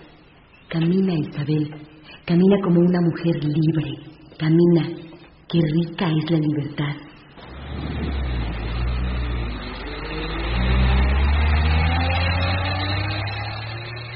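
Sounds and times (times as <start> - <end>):
speech: 0.7 - 7.1
bus to Guadalajara: 7.4 - 14.1.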